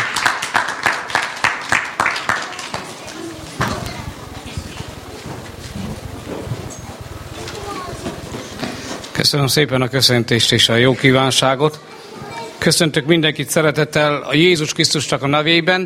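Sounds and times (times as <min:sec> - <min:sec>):
audience clapping: 0:00.0 - 0:03.6
speech: 0:09.3 - 0:11.9, 0:12.6 - 0:15.8.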